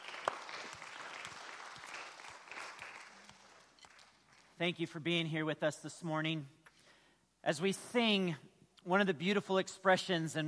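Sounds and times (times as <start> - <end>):
audience clapping: 0.0 - 4.7
speech: 4.6 - 6.6, 7.4 - 10.4.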